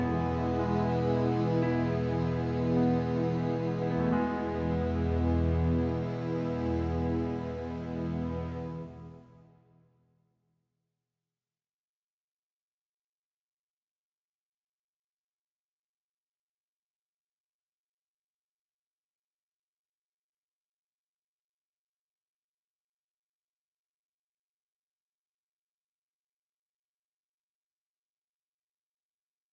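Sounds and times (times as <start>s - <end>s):
Christmas carol accompaniment music: 0.0s - 9.2s.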